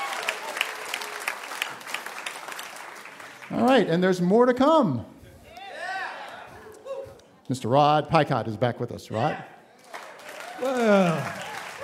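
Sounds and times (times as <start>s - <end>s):
audience applause: 0.0s - 3.7s, 9.8s - 11.8s
speech: 3.5s - 5.1s, 7.5s - 9.5s, 10.6s - 11.4s.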